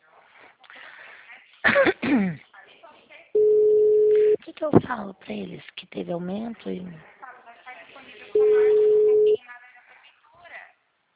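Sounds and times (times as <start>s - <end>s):
speech: 1.8s - 2.4s, 4.5s - 7.1s
telephone line tone while placing a call: 3.4s - 4.4s, 8.4s - 9.4s.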